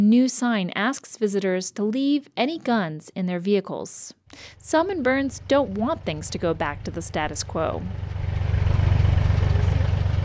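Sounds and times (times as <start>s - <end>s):
speech: 0.0s - 8.2s
farm tractor engine on a cattle ranch driving toward cattle: 4.4s - 10.2s.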